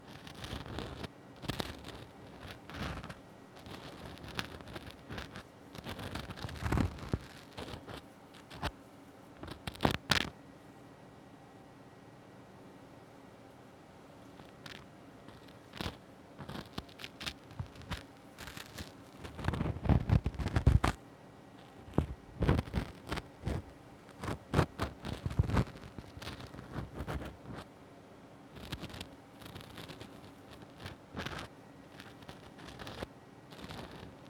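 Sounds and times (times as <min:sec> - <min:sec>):
ear cleaning on the left side: 0:00.1 - 0:08.7, 0:09.4 - 0:10.3, 0:14.4 - 0:21.0, 0:21.8 - 0:27.6, 0:28.6 - 0:34.2.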